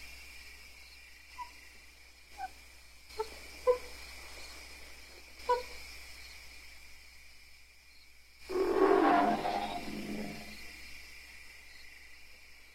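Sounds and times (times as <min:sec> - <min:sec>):
apes long angry screaming: 0:08.5 - 0:10.6.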